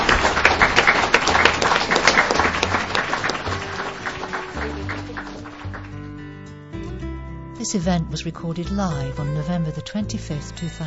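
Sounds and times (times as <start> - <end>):
audience applause: 0.0 - 6.2
speech: 7.7 - 10.8.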